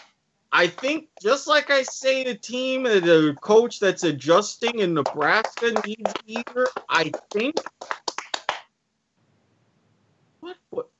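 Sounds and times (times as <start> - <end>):
one person clapping hands: 0.6 - 3.2, 4.0 - 8.6
speech: 0.6 - 8.0.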